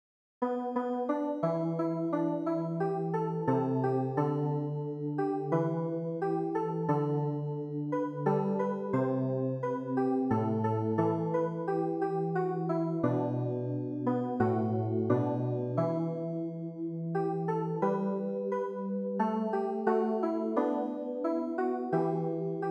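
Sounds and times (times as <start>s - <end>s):
keyboard: 0.4s - 22.6s.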